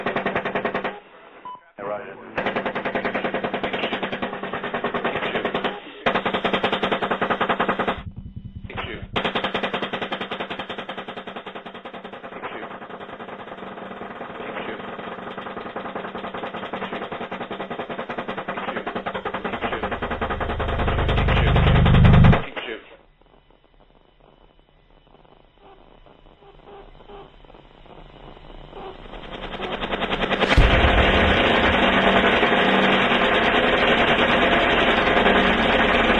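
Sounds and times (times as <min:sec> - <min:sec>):
automatic gunfire from a helicopter gunship: 0:00.0 - 0:01.0, 0:02.3 - 0:08.0, 0:08.9 - 0:22.5, 0:28.8 - 0:36.1
speech: 0:02.0 - 0:02.5
low rumble: 0:07.9 - 0:09.3, 0:29.1 - 0:36.1.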